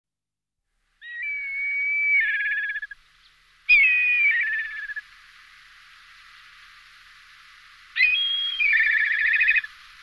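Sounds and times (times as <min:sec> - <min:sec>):
black kite Milvus migrans calling with quavering notes and stuttering pulses: 0:01.0 - 0:03.0, 0:03.7 - 0:05.0, 0:08.0 - 0:09.8.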